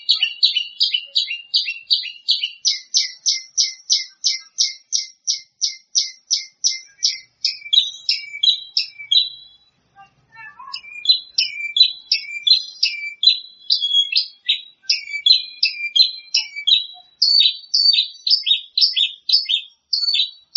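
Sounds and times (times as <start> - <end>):
bird song with varied chirps and warbled trills: 0.0 - 20.5.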